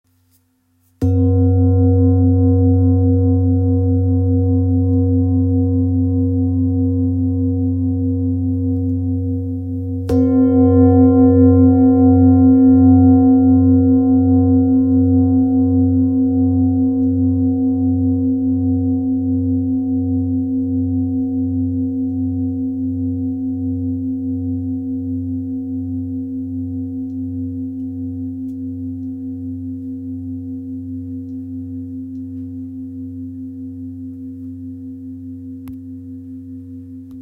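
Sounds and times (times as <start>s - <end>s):
two Tibetan singing bowls ringing: 1.0s - 37.0s.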